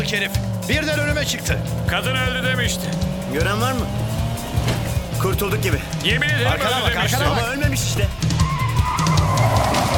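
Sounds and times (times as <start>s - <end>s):
car skidding with tires squealing: 0.0s - 9.9s
rumbling car engine: 0.0s - 9.9s
speech: 0.1s - 4.2s, 5.2s - 8.4s.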